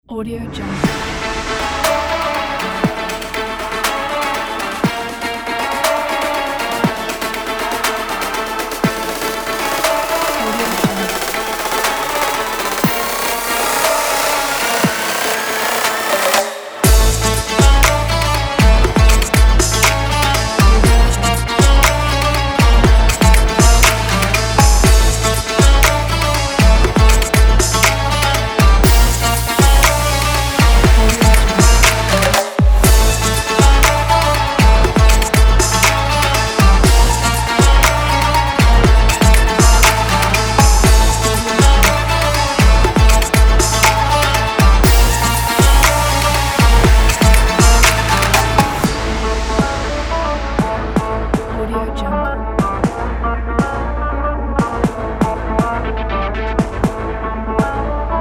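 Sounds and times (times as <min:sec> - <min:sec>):
modern Arabic music: 0:00.0 - 0:58.1.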